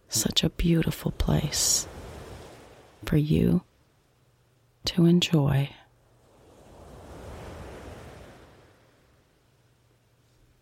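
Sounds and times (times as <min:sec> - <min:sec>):
ocean waves: 0:00.0 - 0:04.2, 0:05.9 - 0:09.9
speech: 0:00.1 - 0:02.0, 0:03.0 - 0:03.7, 0:04.8 - 0:05.8.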